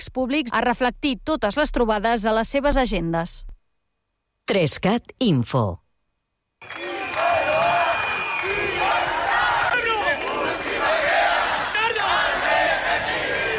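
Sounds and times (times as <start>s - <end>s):
speech: 0.0s - 3.5s, 4.5s - 5.8s, 6.6s - 7.0s
large crowd of protesters shouting chants in unison in the street: 6.6s - 13.5s.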